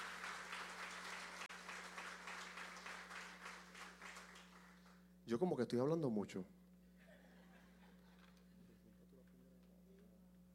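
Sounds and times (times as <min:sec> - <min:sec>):
crowd applause: 0:00.0 - 0:05.0
speech: 0:05.3 - 0:06.6
laughter: 0:07.0 - 0:08.8.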